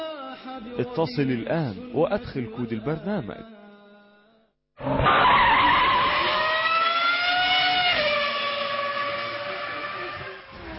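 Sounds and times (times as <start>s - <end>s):
speech: 0.8s - 3.6s
racing car tires screeching in a mobile racing video game: 4.8s - 10.7s.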